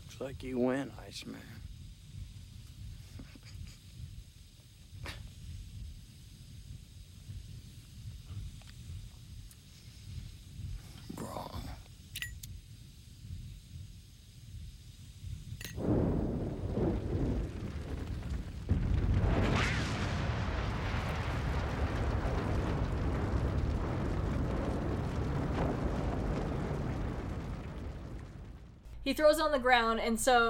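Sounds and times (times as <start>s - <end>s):
speech: 0.2s - 1.7s, 29.1s - 30.4s
car explosion: 15.8s - 28.9s.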